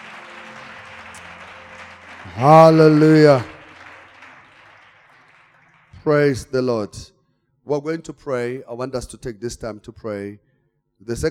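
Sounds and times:
audience clapping: 0.0 - 6.8
speech: 2.2 - 3.5, 6.0 - 11.2.

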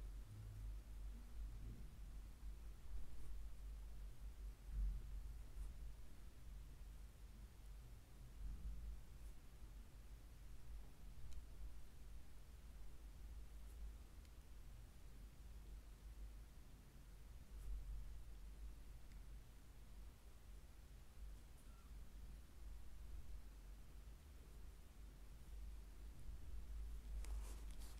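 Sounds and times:
steady low hum with soft hiss during a foot massage: 0.0 - 27.9
faint rustles: 26.9 - 27.9.

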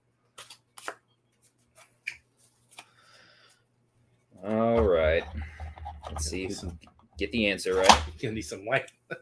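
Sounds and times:
playing cards picked from a deck: 0.4 - 1.0
speech: 6.2 - 9.0.

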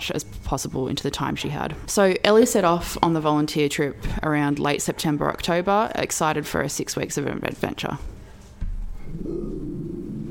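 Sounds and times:
speech: 0.1 - 8.2
dog's low half growl: 9.1 - 10.3.

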